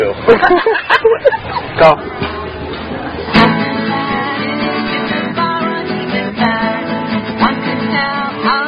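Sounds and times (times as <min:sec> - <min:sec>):
laughter: 0:00.2 - 0:03.4
song: 0:03.2 - 0:08.6.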